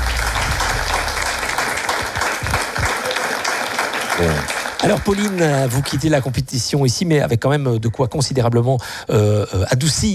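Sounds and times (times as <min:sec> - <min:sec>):
audience applause: 0:00.0 - 0:06.2
speech: 0:04.2 - 0:10.1.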